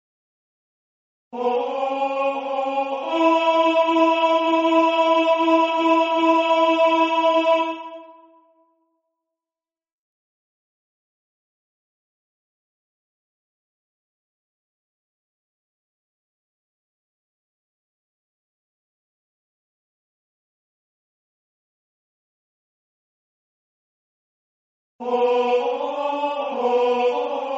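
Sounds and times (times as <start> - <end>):
tenor singing: 1.4 - 8.4, 25.0 - 27.5.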